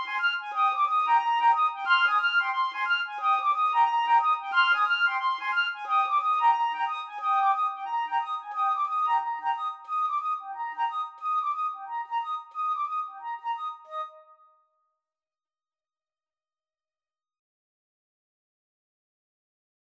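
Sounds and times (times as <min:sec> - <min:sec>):
flute and clarinet duet: 0:00.0 - 0:14.4.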